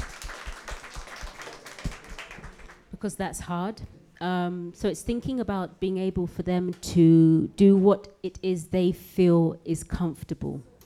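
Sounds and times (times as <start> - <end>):
hands clapping: 0.0 - 2.8
speech: 3.0 - 10.7.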